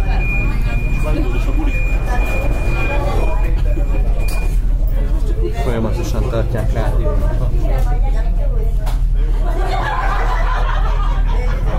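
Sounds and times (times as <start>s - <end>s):
constant high-pitched tone inside a metro car: 0.0s - 7.8s
loud mechanical hum inside a stopped metro car: 0.0s - 11.7s
passengers murmuring in a metro car: 0.0s - 11.7s
laughter: 9.2s - 11.7s.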